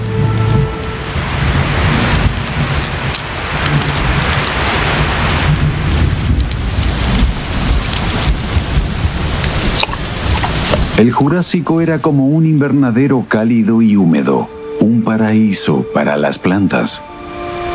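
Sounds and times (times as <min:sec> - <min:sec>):
heavy rain: 0:00.0 - 0:17.7
speech: 0:11.0 - 0:17.2.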